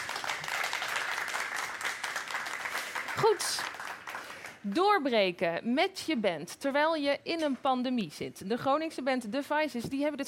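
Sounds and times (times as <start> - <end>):
audience applause: 0.0 - 4.6
speech: 3.3 - 3.7, 4.6 - 10.2.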